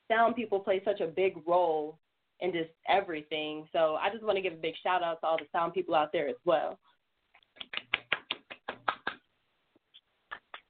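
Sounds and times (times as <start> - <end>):
speech: 0.1 - 6.9
hands clapping: 7.4 - 9.3, 10.3 - 10.6.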